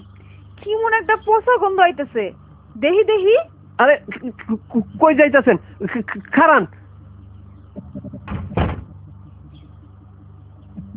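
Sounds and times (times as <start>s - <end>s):
speech: 0.6s - 6.8s
soft low knocks: 7.8s - 9.6s
door being shut: 8.1s - 9.0s.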